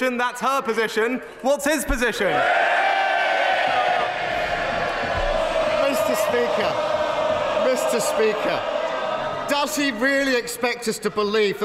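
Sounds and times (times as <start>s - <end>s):
speech: 0.0s - 2.9s, 6.3s - 7.0s, 7.7s - 8.8s, 9.5s - 11.6s
members of parliament cheering: 2.3s - 11.6s.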